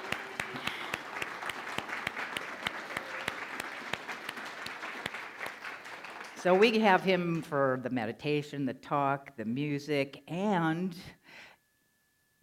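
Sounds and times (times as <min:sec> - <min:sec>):
audience applause welcoming piano performers in Santa Fe: 0:00.0 - 0:06.8
speech: 0:06.4 - 0:11.2.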